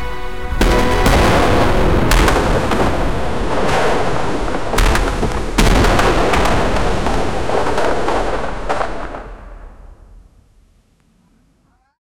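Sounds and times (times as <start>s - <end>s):
intense and chaotic battlefield: 0.4s - 9.7s.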